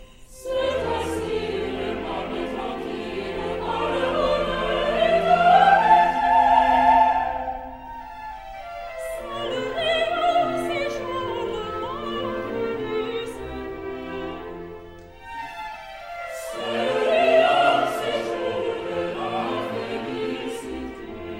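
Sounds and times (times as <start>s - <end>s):
choir singing: 0.0s - 21.3s.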